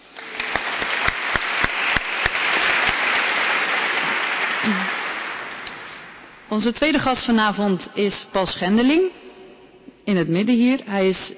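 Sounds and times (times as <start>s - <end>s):
audience applause: 0.0s - 6.3s
speech: 6.6s - 9.2s, 10.1s - 11.3s.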